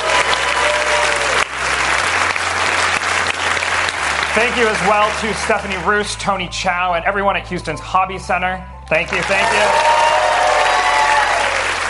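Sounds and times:
round of applause from a large crowd: 0:00.0 - 0:06.2, 0:09.0 - 0:11.8
speech: 0:04.4 - 0:10.0.

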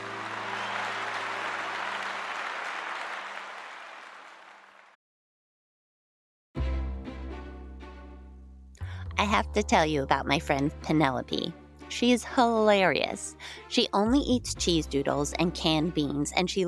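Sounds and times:
applause: 0:00.0 - 0:05.0
audience cheering: 0:00.0 - 0:05.0
speech: 0:09.2 - 0:16.6.

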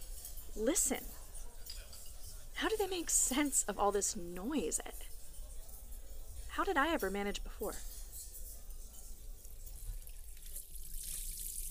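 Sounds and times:
speech: 0:00.6 - 0:01.2, 0:02.6 - 0:05.1, 0:06.6 - 0:07.9
tap water running into a sink: 0:10.0 - 0:11.6.

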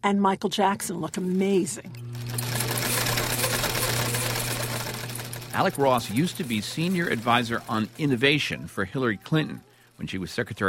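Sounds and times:
speech: 0:00.0 - 0:02.3, 0:05.6 - 0:10.6
sewing machine stitching: 0:00.9 - 0:10.6.

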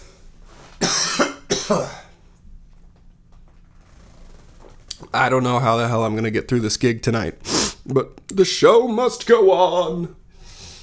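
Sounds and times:
person coughing: 0:00.8 - 0:02.2
speech: 0:01.7 - 0:02.0, 0:05.2 - 0:10.2.

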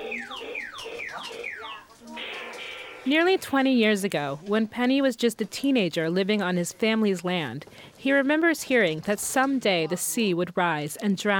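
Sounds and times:
toy bike electronic squawk box wailing: 0:00.0 - 0:03.1
speech: 0:03.0 - 0:11.3.

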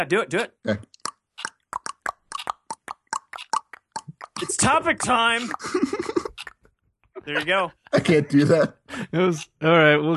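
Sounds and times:
speech: 0:00.0 - 0:00.9, 0:04.4 - 0:06.3, 0:07.2 - 0:10.1
voices imitating a ticking clock with mouth clicks and tongue pops: 0:00.7 - 0:06.6
laughter: 0:04.4 - 0:06.4, 0:07.2 - 0:09.2.

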